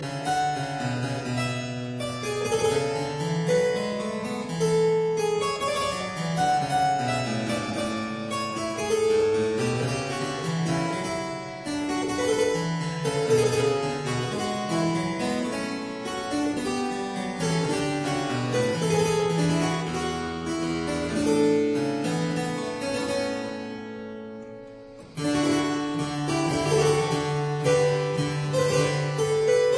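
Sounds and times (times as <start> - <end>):
sarabande dance piece in E flat major: 0.0 - 29.7.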